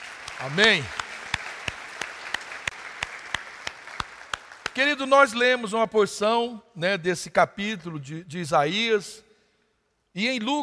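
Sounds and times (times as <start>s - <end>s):
audience applause: 0.0s - 5.0s
speech: 0.4s - 1.0s, 4.8s - 9.2s, 10.1s - 10.6s.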